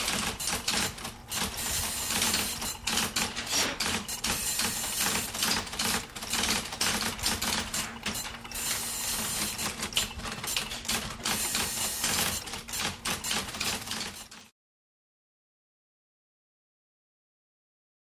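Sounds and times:
hum in a computer room: 0:00.0 - 0:13.6
fans in a computer room: 0:00.0 - 0:14.0.

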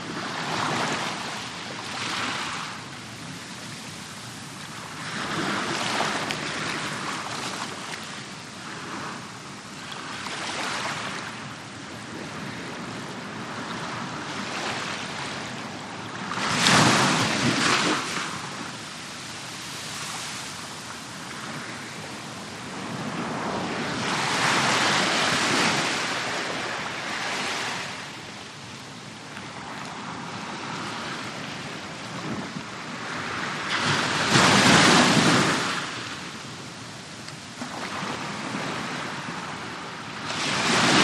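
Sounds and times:
close-up waves and surf: 0:00.0 - 0:41.0.

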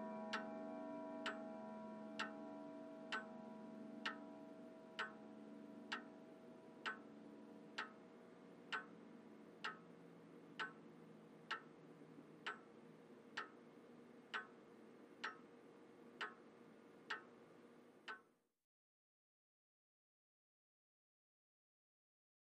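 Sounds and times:
grandfather clock: 0:00.0 - 0:08.0, 0:10.5 - 0:10.8, 0:11.5 - 0:12.7, 0:13.3 - 0:13.6, 0:14.2 - 0:15.5, 0:16.2 - 0:16.4, 0:17.1 - 0:17.3.

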